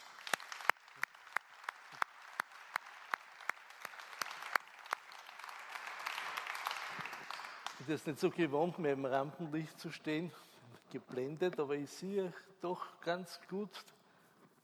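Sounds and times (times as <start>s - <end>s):
audience applause: 0.0s - 8.7s
speech: 7.9s - 14.0s.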